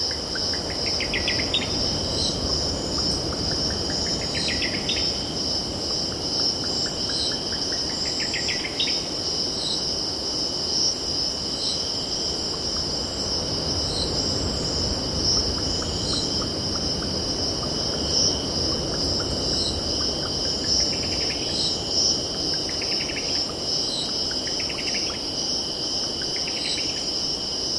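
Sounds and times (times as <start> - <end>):
surf rumble: 0.0 - 7.7, 12.2 - 23.4
cicadas droning: 0.0 - 27.7.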